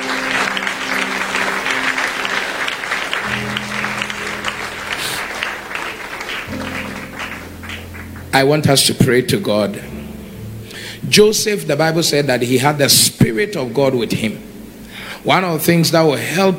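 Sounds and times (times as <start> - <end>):
audience clapping hands: 0.0 - 9.3
speech: 8.4 - 9.9, 11.0 - 14.5, 15.2 - 16.5.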